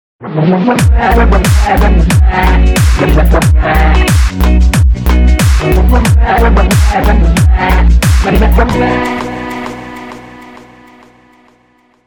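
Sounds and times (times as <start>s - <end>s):
dog beatbox remix: 0.6s - 9.7s.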